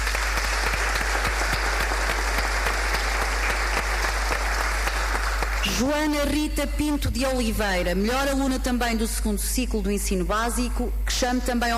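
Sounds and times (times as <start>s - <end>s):
audience applause: 0.0s - 5.8s
speech: 5.8s - 11.7s.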